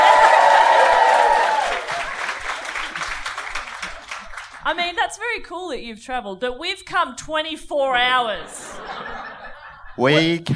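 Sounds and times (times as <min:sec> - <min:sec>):
audience round of applause: 0:00.0 - 0:04.7
speech: 0:04.7 - 0:09.0, 0:10.0 - 0:10.5
laughter: 0:08.4 - 0:10.5.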